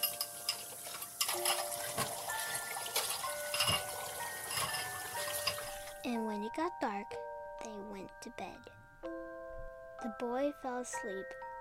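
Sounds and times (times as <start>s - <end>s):
washing dishes: 0.0s - 6.0s
speech: 6.1s - 9.2s, 10.0s - 11.4s.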